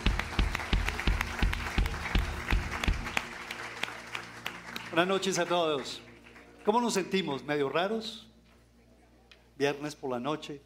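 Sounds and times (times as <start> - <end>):
audience applauding: 0.0 - 7.4
speech: 5.0 - 6.0, 6.6 - 8.3, 9.6 - 10.6.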